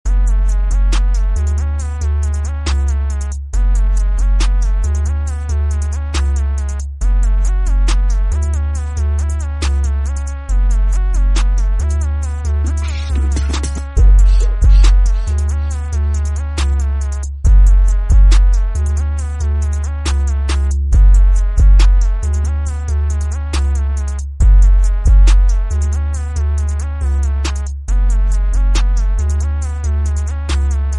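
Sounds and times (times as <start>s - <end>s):
instrumental song: 0.1s - 30.9s.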